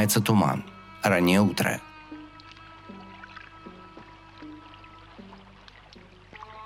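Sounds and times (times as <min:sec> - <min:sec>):
speech: 0:00.0 - 0:01.9
murmur of flowing river water: 0:00.7 - 0:06.6
oars rowing a small boat on a river: 0:02.2 - 0:06.6.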